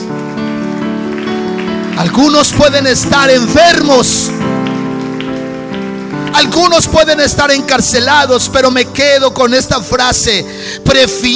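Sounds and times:
audience applause: 0:00.0 - 0:07.9
speech: 0:02.0 - 0:04.6, 0:06.3 - 0:11.3.

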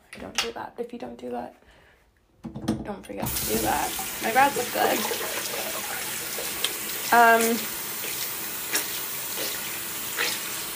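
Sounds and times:
speech: 0:00.2 - 0:01.8, 0:02.4 - 0:05.3, 0:07.1 - 0:07.8
tap water running onto beauty blender makeup sponges: 0:03.2 - 0:10.7.

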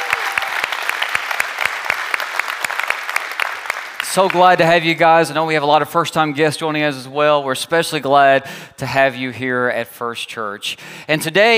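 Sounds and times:
church congregation applause during a Sunday morning service: 0:00.0 - 0:05.0
speech: 0:04.2 - 0:11.5.

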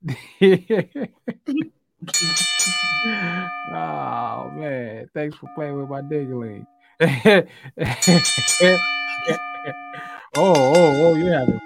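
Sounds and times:
laughter: 0:00.0 - 0:03.5, 0:07.0 - 0:10.3
speech: 0:00.1 - 0:02.4, 0:03.0 - 0:11.6
bell ringing on a wrestling talk show: 0:02.1 - 0:06.8, 0:07.9 - 0:11.6.

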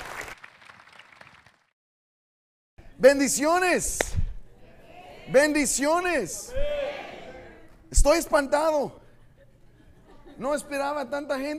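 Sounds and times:
crowd applauding: 0:00.0 - 0:01.7
speech: 0:03.0 - 0:04.2, 0:05.3 - 0:06.7, 0:07.9 - 0:09.0, 0:10.4 - 0:11.5
laughter: 0:09.0 - 0:10.8.

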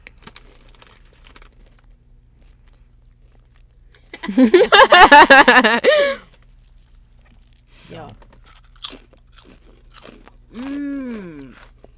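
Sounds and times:
crunching on fried green tomatoes: 0:00.0 - 0:03.4, 0:07.4 - 0:11.9
laughter: 0:04.2 - 0:06.2
speech: 0:04.3 - 0:06.2.

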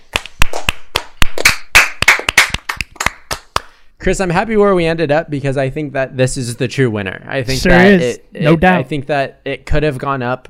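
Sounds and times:
group clapping hands: 0:00.0 - 0:03.8
speech: 0:04.0 - 0:10.4.

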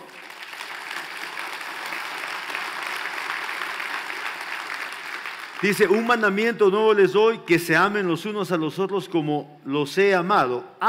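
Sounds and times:
audience applauding: 0:00.0 - 0:06.3
speech: 0:05.6 - 0:10.8.

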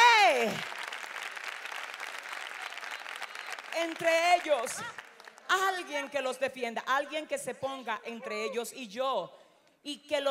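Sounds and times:
audience applause: 0:00.0 - 0:05.5
speech: 0:03.8 - 0:10.2.

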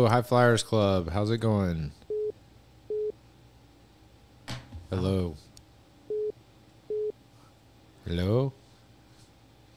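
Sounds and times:
speech: 0:00.0 - 0:02.0, 0:04.9 - 0:05.5, 0:08.1 - 0:08.6
phone line beep tone: 0:06.1 - 0:06.3, 0:06.9 - 0:07.1.

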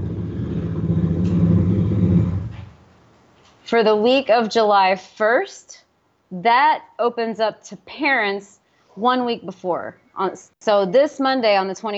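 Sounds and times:
motorcycle passing: 0:00.0 - 0:02.9
speech: 0:03.7 - 0:11.9.

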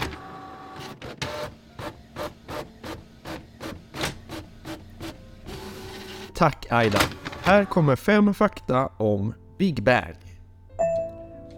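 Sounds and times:
printer printing out a sheet of paper: 0:00.0 - 0:07.9
speech: 0:06.4 - 0:10.2.

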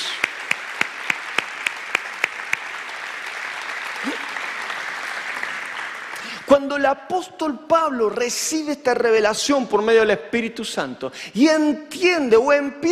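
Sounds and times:
audience applause: 0:00.0 - 0:06.5
speech: 0:06.5 - 0:12.8.

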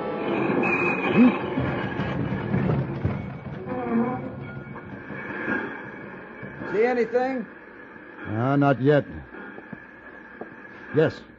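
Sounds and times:
train rumbling: 0:00.0 - 0:11.3
train brakes squealing: 0:00.2 - 0:09.2
speech: 0:06.9 - 0:07.6, 0:08.3 - 0:09.3, 0:10.9 - 0:11.3.

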